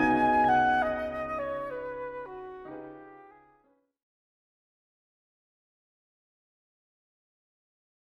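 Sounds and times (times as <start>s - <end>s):
flute: 0.0s - 3.6s.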